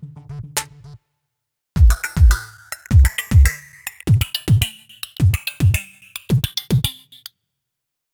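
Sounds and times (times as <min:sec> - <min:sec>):
electronic loops: 0:01.8 - 0:07.3.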